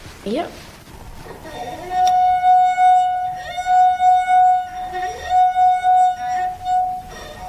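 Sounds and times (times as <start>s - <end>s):
musical note played on a water glass: 1.5s - 7.4s.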